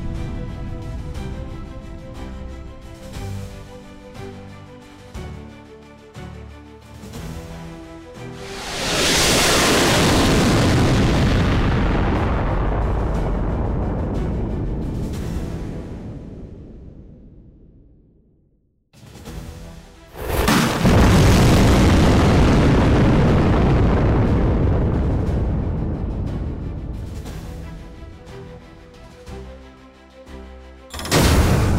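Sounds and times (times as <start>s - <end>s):
missile launch: 8.4s - 15.2s, 20.2s - 27.2s, 31.0s - 31.7s.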